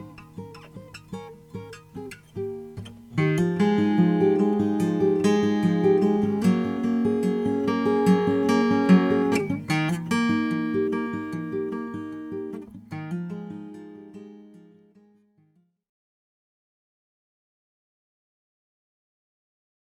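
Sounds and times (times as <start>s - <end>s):
cutaway Macassar ebony acoustic guitar: 0.0s - 15.5s.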